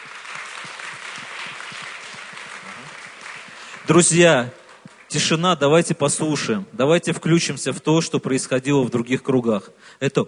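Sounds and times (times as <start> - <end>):
audience applause: 0.0 - 5.4
speech: 3.9 - 10.2.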